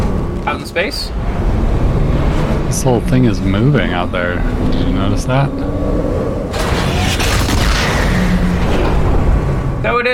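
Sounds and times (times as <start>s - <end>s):
speech: 0.5s - 1.5s, 2.7s - 6.2s
low thundering rumble: 1.1s - 9.9s
gun firing with heavy recoil, deep boom: 6.5s - 9.1s.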